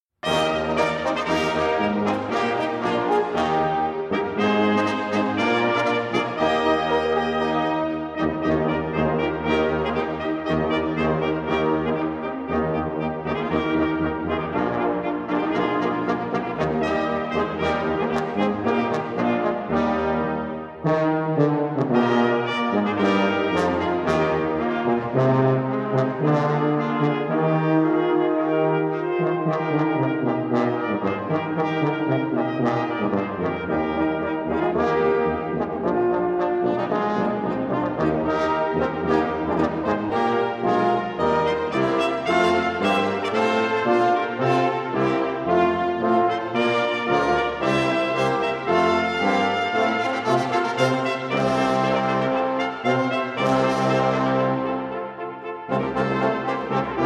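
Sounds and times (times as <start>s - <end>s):
brass sextet playing: 0.2s - 57.0s.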